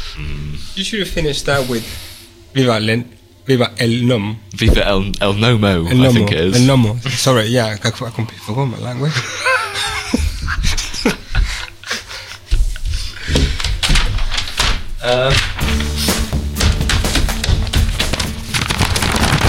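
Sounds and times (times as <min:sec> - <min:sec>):
speech: 0:00.2 - 0:09.5, 0:15.0 - 0:15.5
laughter: 0:09.0 - 0:13.5
paper shuffling: 0:12.5 - 0:19.4.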